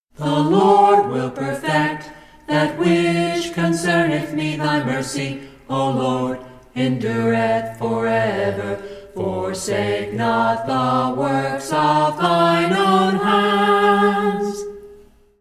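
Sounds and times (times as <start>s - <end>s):
a cappella scripture song: 0.1s - 15.1s.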